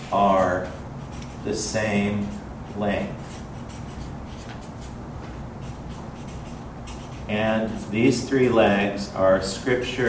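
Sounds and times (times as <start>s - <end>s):
pen strokes drawing a three-legged stool diagram: 0.0s - 9.0s, 9.8s - 10.0s
speech: 0.1s - 0.8s, 1.4s - 3.4s, 7.3s - 10.0s.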